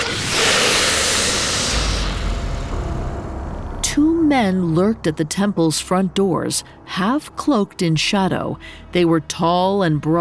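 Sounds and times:
hissing: 0.0s - 3.8s
speech: 4.3s - 10.1s.

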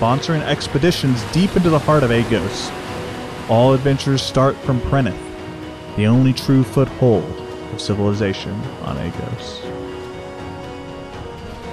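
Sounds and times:
speech: 0.0s - 2.8s, 3.5s - 5.2s, 6.0s - 9.8s
sea waves crashing against the cliffside: 0.0s - 6.3s.

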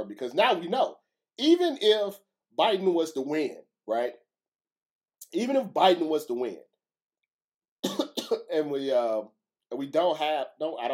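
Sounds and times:
speech: 0.0s - 4.2s, 5.2s - 6.7s, 7.8s - 10.9s
person clearing throat with something caught in it: 7.8s - 8.5s.

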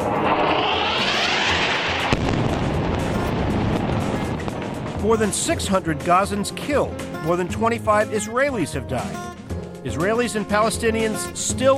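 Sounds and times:
massive explosion over Gaza City: 0.0s - 6.4s
speech: 5.0s - 11.7s.

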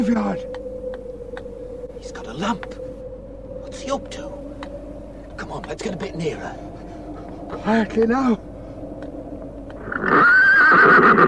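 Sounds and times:
speech: 0.0s - 0.6s, 2.0s - 2.8s, 3.7s - 4.4s, 5.4s - 6.7s, 7.5s - 8.5s
pony neighing: 9.8s - 11.2s.

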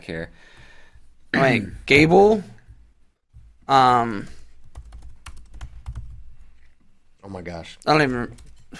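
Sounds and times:
speech: 0.0s - 0.6s, 1.3s - 2.5s, 3.7s - 4.4s, 7.2s - 8.7s
typing on a keyboard: 4.7s - 6.2s.

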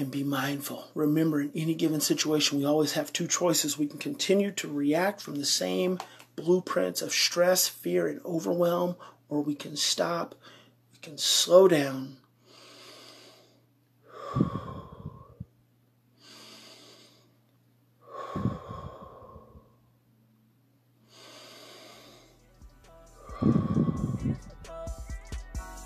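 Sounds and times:
speech: 0.0s - 12.2s
slow deep breathing: 12.4s - 19.9s, 21.0s - 24.6s.

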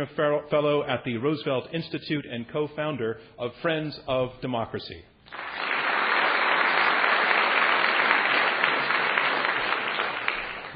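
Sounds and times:
speech: 0.0s - 5.7s
audience applause: 5.3s - 10.7s.

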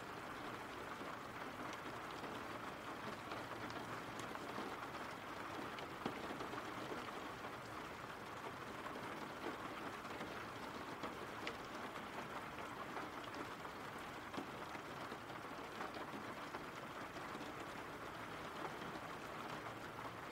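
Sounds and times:
rain falling on a surface: 0.0s - 20.3s.

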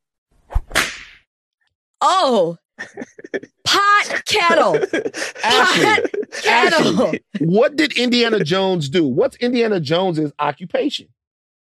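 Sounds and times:
whip crack: 0.5s - 1.2s
speech: 2.0s - 11.2s
laughter: 2.8s - 9.7s.

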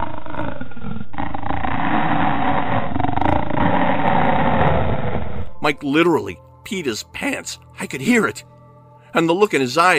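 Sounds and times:
long drawn-out belch-like creature call echoing around the forest: 0.0s - 5.6s
speech: 5.7s - 8.5s, 9.1s - 9.9s.

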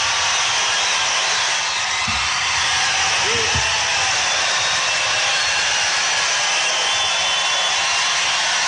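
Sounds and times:
large crowd giving wild applause and standing ovation: 0.0s - 8.6s.

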